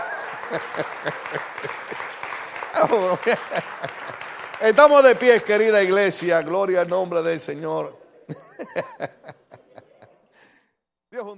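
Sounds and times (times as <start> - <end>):
laughter: 0.0 - 4.4, 8.3 - 10.3
crowd applauding: 0.0 - 7.6
speech: 0.5 - 2.2, 2.8 - 9.4, 11.1 - 11.3.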